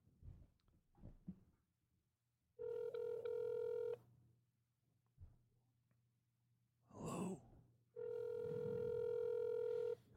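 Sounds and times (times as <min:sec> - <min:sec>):
outgoing telephone call ringback tone: 0:02.6 - 0:04.0, 0:08.0 - 0:10.0.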